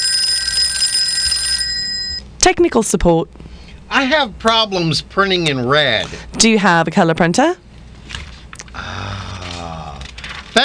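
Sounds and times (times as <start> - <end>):
telephone ringing with metallic bell: 0.0 - 2.2
speech: 2.4 - 7.6.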